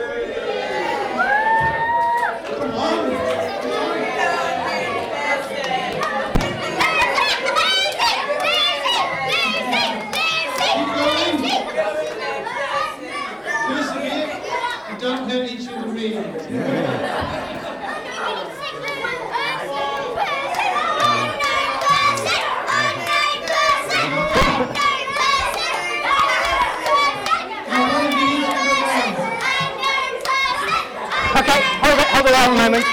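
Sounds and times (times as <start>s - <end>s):
large group of children cheering and shouting: 0.0s - 14.9s, 17.7s - 32.9s
laughter: 3.7s - 13.3s, 16.3s - 18.4s, 20.1s - 25.3s
thuds: 6.3s - 6.7s.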